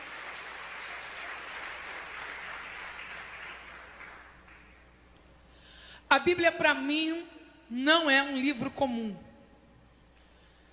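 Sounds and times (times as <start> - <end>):
audience applauding: 0.0 - 4.8
speech: 6.1 - 9.2.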